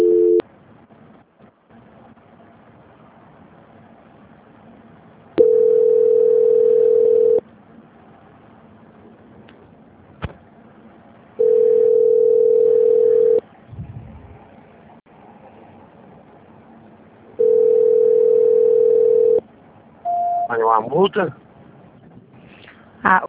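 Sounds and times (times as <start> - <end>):
telephone line beeps while a call is transferred: 0.0 - 0.4, 5.4 - 7.4, 11.4 - 13.4, 17.4 - 19.4, 20.1 - 20.5.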